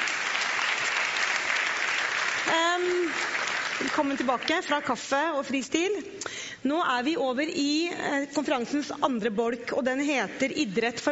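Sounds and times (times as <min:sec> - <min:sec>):
audience applause: 0:00.0 - 0:04.5
speech: 0:03.8 - 0:11.1.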